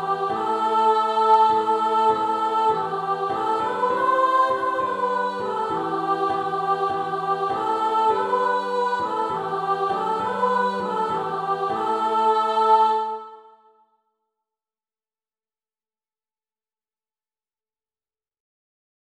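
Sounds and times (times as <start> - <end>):
soprano singing: 0.0 - 13.7.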